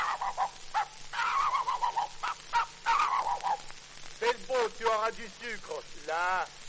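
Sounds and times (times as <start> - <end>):
man's voice imitating a dog barking: 0.0 - 3.6
speech: 5.0 - 6.6.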